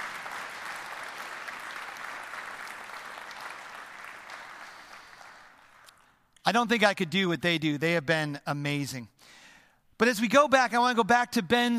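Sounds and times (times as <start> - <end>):
church audience applauding: 0.0 - 6.1
speech: 6.5 - 9.4, 10.0 - 11.7.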